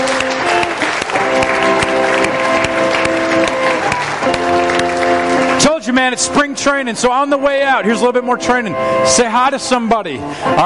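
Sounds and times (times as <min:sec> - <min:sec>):
audience applause: 0:00.0 - 0:06.6
speech: 0:06.1 - 0:10.6.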